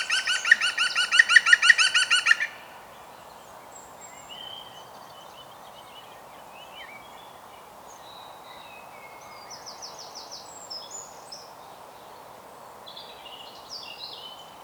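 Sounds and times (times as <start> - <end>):
European green woodpecker Picus viridis laughing calls: 0.0 - 2.5.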